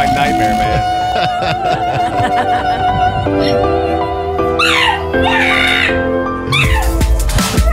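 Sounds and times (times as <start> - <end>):
donkey braying: 0.0 - 7.7
laughter: 0.6 - 4.0
pug howling: 1.6 - 7.7.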